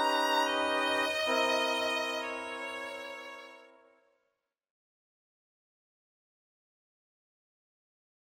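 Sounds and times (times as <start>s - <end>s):
orchestra: 0.0s - 3.9s.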